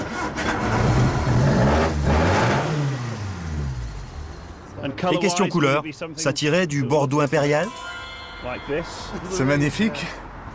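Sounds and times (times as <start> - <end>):
1600 cc car engine revving: 0.0 - 4.7
speech: 5.0 - 10.2.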